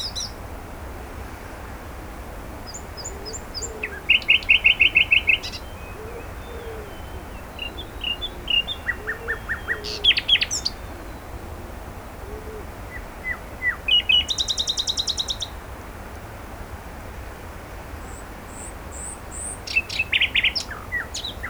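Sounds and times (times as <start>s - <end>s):
common nightingale singing: 0.0s - 0.4s, 2.7s - 11.4s, 12.3s - 15.6s, 18.5s - 21.4s.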